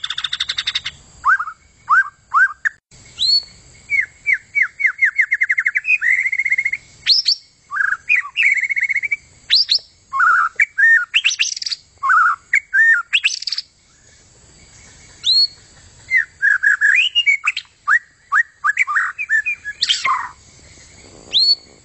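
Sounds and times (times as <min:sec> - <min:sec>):
White-rumped shama song: 0:00.0 - 0:21.8.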